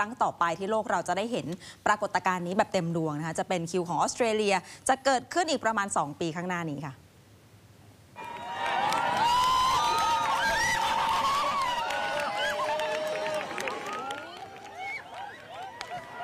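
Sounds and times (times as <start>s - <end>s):
speech: 0.0s - 7.0s
large crowd cheering: 8.2s - 16.2s.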